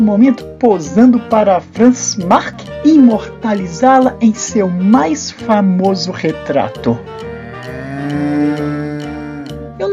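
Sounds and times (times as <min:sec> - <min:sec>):
speech: 0:00.0 - 0:08.7
cow mooing: 0:07.1 - 0:09.8.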